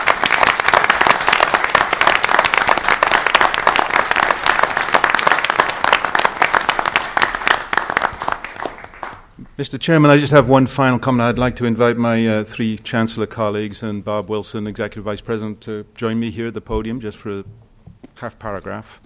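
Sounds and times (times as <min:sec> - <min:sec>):
applause: 0:00.0 - 0:09.4
speech: 0:09.6 - 0:17.6, 0:18.2 - 0:19.0.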